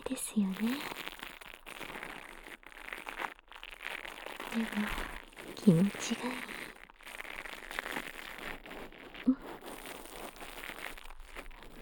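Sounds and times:
brush bristles crackling inside the ear: 0.0s - 11.7s
speech: 0.1s - 1.0s, 4.6s - 6.6s.

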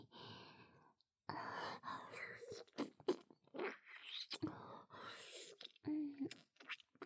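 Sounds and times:
oral sex sounds: 2.1s - 7.0s.

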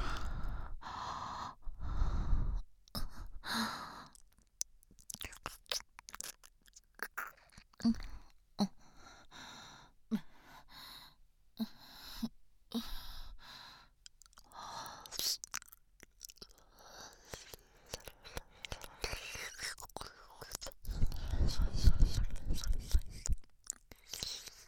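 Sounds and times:
close breathing: 0.0s - 4.2s, 7.9s - 15.3s, 20.8s - 23.4s.

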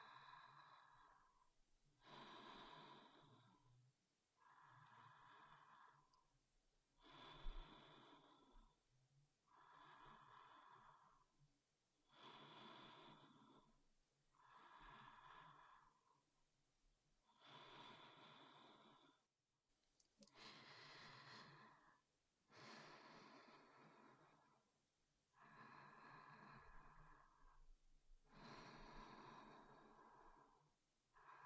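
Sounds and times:
sleep breathing: 0.0s - 1.4s, 2.0s - 3.7s, 4.4s - 6.2s, 7.0s - 8.8s, 9.4s - 11.3s, 12.0s - 16.2s, 17.3s - 19.3s, 20.2s - 24.7s, 25.3s - 27.7s, 28.3s - 31.4s.

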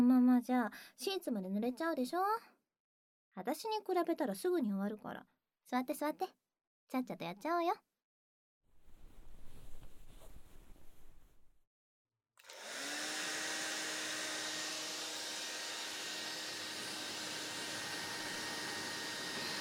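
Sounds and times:
speech: 0.4s - 2.6s, 3.4s - 7.9s
soft rustling: 8.8s - 11.6s
hair dryer blowing on wet hair: 12.4s - 19.5s.

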